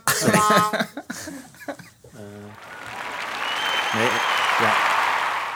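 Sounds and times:
laughter: 0.1s - 2.6s
applause sound effect from soundboard button: 2.5s - 5.5s.

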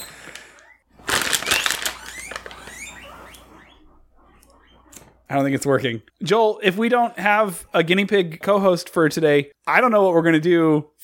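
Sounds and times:
pet treat packaging rustling: 0.3s - 2.8s
speech: 5.3s - 11.0s.

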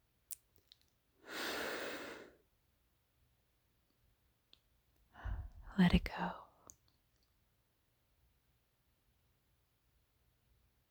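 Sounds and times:
deep breath in: 1.3s - 2.3s, 5.2s - 5.7s
speech: 5.8s - 6.4s.

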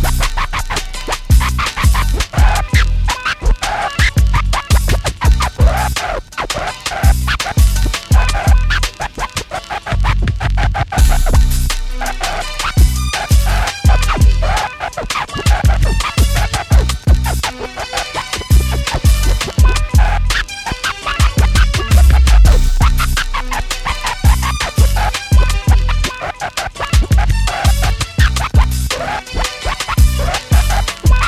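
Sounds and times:
steady beat with a strong low kick: 0.0s - 9.2s, 9.9s - 31.2s
turntable scratching on Stanton STR8-80 turntables: 0.0s - 31.2s.

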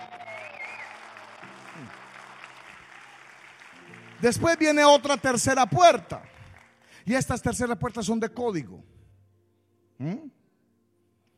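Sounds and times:
crowd applause: 0.0s - 7.4s
speech: 1.8s - 2.0s, 4.2s - 6.2s, 7.1s - 8.9s, 10.0s - 10.4s.

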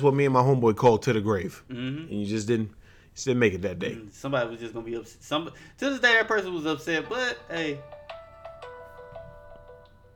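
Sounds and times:
speech: 0.0s - 8.0s
phone ringing with an incoming call: 7.0s - 10.1s.

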